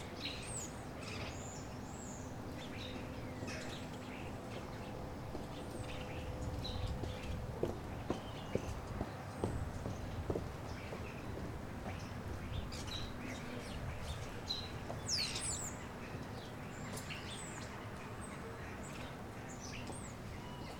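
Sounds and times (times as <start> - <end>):
early morning soundscape at Mont Saint Michel: 0.0 - 20.7.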